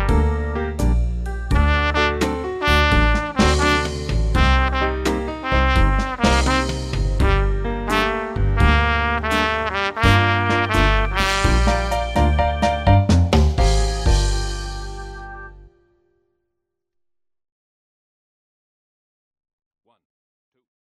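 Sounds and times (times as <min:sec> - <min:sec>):
low blues in A: 0:00.0 - 0:15.8.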